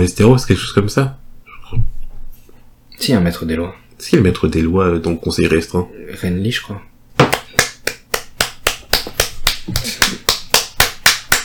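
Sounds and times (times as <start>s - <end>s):
speech: 0.0s - 1.8s, 3.0s - 6.9s
one person clapping hands: 7.2s - 11.4s.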